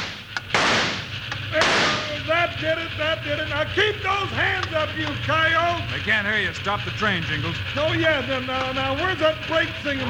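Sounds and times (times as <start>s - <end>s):
gunshots: 0.0s - 2.2s
speech: 2.6s - 10.0s.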